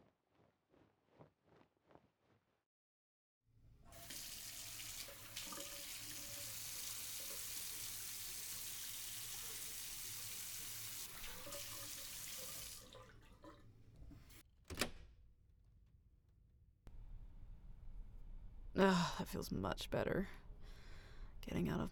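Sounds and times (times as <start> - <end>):
tap water running into a bathroom sink while someone washes their face: 3.9 - 14.4
speech: 18.8 - 20.4, 21.5 - 21.9.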